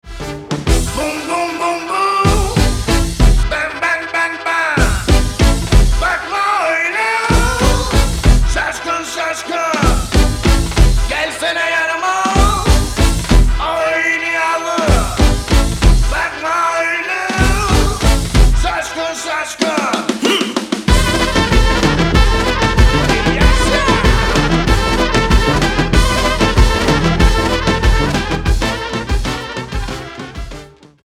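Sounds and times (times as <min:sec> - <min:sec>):
groove music: 0:00.0 - 0:11.6, 0:12.2 - 0:20.2, 0:20.8 - 0:30.8.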